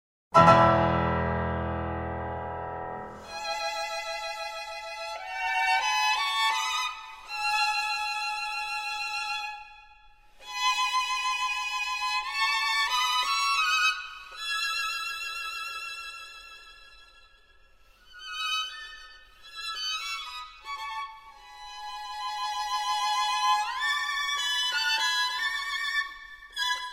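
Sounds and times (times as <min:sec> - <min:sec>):
piano: 0:00.3 - 0:26.9
two violins: 0:03.0 - 0:26.9.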